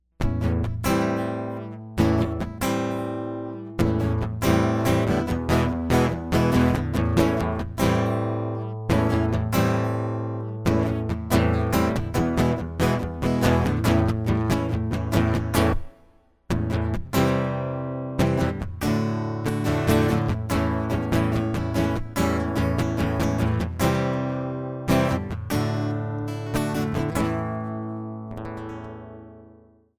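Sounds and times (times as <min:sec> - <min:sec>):
acoustic music: 0:00.2 - 0:29.8.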